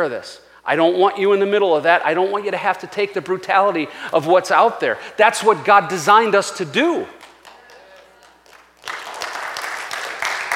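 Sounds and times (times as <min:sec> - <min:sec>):
speech: 0:00.0 - 0:07.2
audience clapping lightly: 0:07.2 - 0:10.5.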